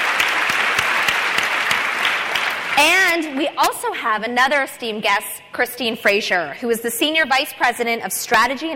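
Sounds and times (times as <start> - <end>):
audience applause: 0.0 - 3.4
speech: 2.8 - 8.7.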